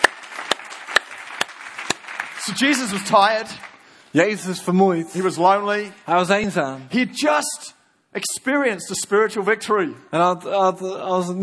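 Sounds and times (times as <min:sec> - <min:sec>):
sharp claps: 0:00.0 - 0:03.8
speech: 0:02.4 - 0:11.4.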